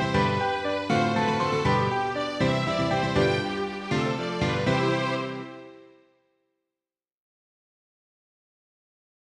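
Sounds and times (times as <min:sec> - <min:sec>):
piano: 0:00.0 - 0:06.4.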